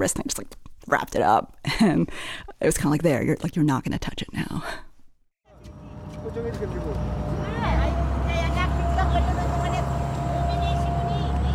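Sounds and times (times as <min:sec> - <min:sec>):
speech: 0:00.0 - 0:04.8
old industrial blue fishing boat motor picking up speed: 0:05.6 - 0:11.5.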